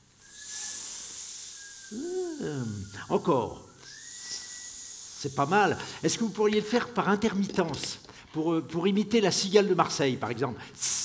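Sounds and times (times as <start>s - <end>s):
faint thin whistle: 0.0s - 6.3s
person hissing through the incisors: 0.0s - 8.3s, 10.8s - 11.0s
speech: 1.9s - 3.6s, 5.2s - 11.0s.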